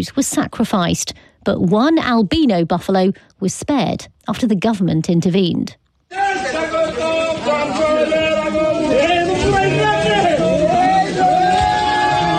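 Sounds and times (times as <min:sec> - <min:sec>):
speech: 0:00.0 - 0:09.1
crowd cheering: 0:06.1 - 0:12.3.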